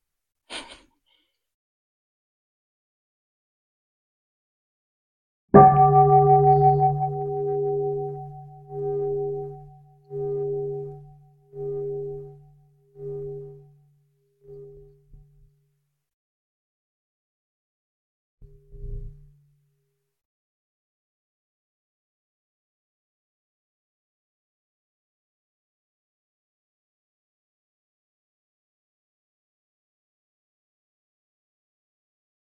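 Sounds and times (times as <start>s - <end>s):
bell ringing: 5.6s - 12.4s.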